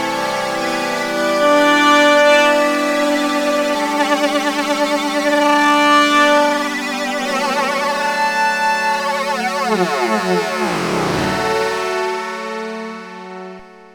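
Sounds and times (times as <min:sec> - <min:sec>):
synthesizers with chorus effect: 0:00.0 - 0:13.9.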